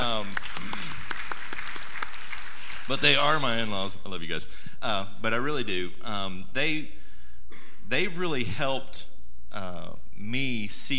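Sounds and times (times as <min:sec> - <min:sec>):
audience clapping: 0:00.0 - 0:03.7
speech: 0:02.9 - 0:07.0, 0:07.9 - 0:10.9.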